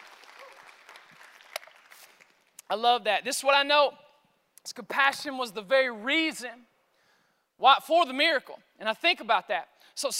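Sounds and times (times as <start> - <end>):
church congregation clapping to welcome online viewers: 0.0 - 2.7
speech: 2.7 - 4.0, 4.7 - 6.7, 7.6 - 10.1.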